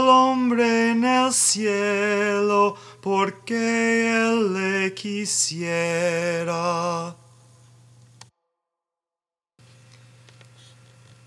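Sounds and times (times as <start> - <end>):
tenor and bass voices singing a pronunciation track: 0.0 - 7.2.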